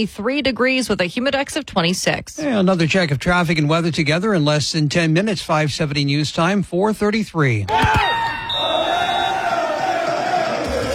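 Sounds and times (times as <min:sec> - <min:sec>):
speech: 0:00.0 - 0:08.3
large crowd of football fans chanting and cheering: 0:08.0 - 0:10.9.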